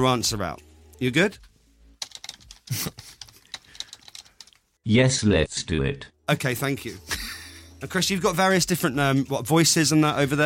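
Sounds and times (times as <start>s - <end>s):
speech: 0.0s - 1.5s, 2.7s - 3.2s, 4.8s - 7.2s, 7.8s - 10.4s
rapid typing on a computer keyboard: 2.0s - 4.6s.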